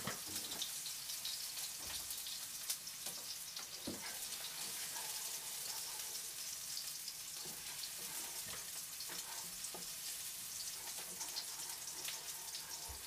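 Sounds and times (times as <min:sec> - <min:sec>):
tomato sauce pasta frying sizzle: 0:00.0 - 0:13.0.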